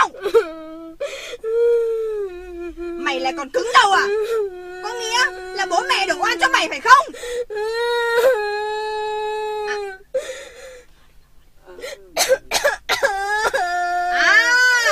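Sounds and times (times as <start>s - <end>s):
child crying and wailing: 0.0s - 10.0s, 13.0s - 14.9s
speech: 3.2s - 4.4s, 5.0s - 8.5s.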